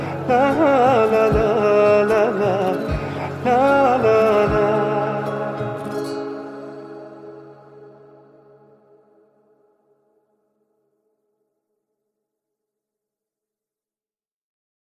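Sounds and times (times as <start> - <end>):
guitar: 0.0 - 9.7.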